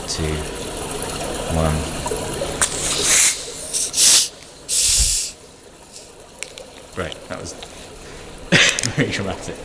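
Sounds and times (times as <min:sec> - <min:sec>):
speech: 0:00.1 - 0:00.6, 0:01.5 - 0:02.1, 0:07.0 - 0:07.7, 0:08.8 - 0:09.6
bottles being uncorked with hiss: 0:02.6 - 0:06.1.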